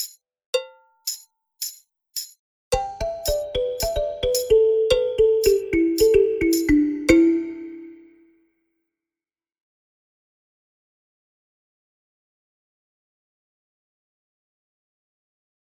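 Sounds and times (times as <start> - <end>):
balafon: 2.7 - 8.2.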